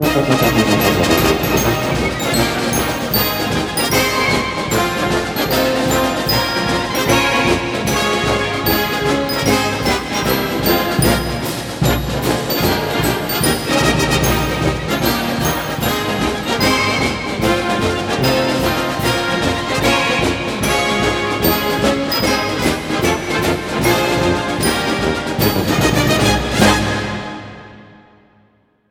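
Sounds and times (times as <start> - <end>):
song: 0.0 - 27.8.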